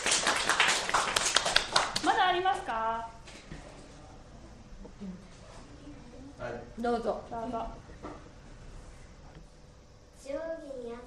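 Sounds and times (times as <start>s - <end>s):
clapping: 0.0s - 2.2s
speech: 2.7s - 3.2s, 6.4s - 8.2s.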